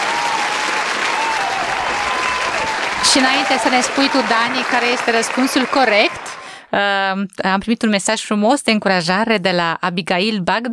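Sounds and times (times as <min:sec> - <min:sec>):
crowd applauding for children: 0:00.0 - 0:06.6
speech: 0:03.0 - 0:10.7.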